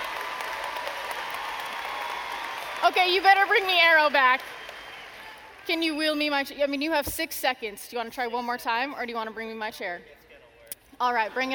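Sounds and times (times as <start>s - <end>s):
audience applause: 0.0s - 5.8s
speech: 2.8s - 4.6s, 5.7s - 10.2s, 11.0s - 11.5s.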